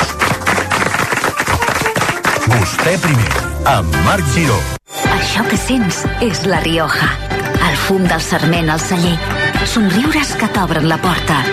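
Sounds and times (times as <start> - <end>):
applause: 0.0 - 3.6
speech: 2.7 - 11.5.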